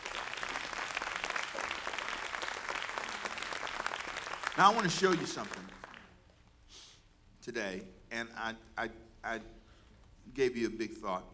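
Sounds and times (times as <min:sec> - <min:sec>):
church congregation clapping: 0:00.0 - 0:06.3
speech: 0:04.6 - 0:05.7, 0:07.4 - 0:09.6, 0:10.3 - 0:11.3.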